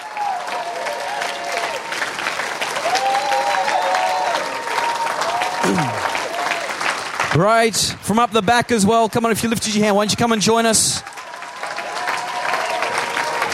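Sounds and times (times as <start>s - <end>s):
audience applause: 0.0s - 7.6s, 10.9s - 13.5s
speech: 5.7s - 6.0s, 7.3s - 11.2s.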